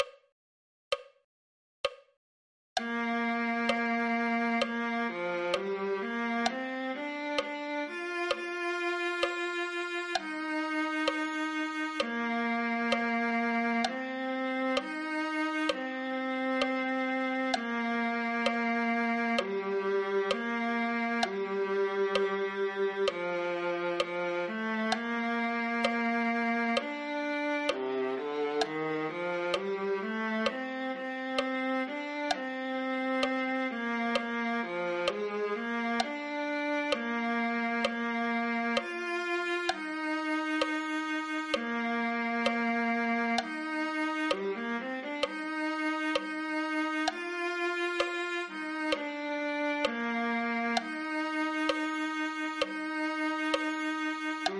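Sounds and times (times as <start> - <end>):
viola: 2.8 - 54.5.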